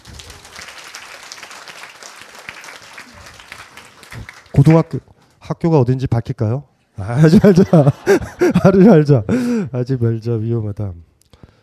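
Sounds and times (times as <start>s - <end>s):
audience applause: 0.0s - 5.0s
speech: 4.6s - 11.1s
laughter: 7.0s - 9.6s.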